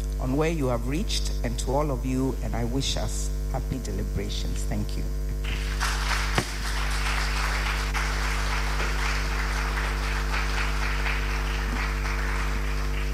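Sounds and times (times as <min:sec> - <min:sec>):
low steady hum: 0:00.0 - 0:13.1
speech: 0:00.2 - 0:06.0
crowd applauding: 0:05.4 - 0:13.1.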